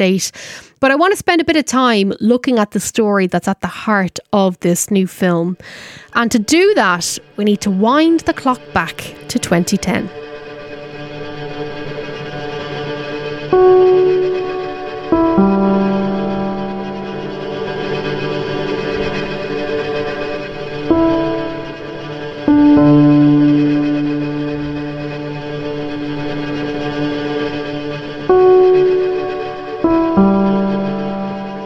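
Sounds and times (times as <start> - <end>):
speech: 0.0 - 10.2
film opening theme music: 6.4 - 31.6.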